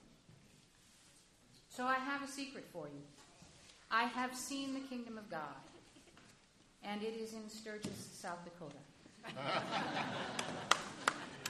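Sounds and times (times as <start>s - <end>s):
speech: 1.8s - 3.3s, 3.9s - 5.8s, 6.8s - 10.9s
laughter: 9.2s - 11.4s
single man in the audience at a sermon clapping: 10.4s - 11.4s.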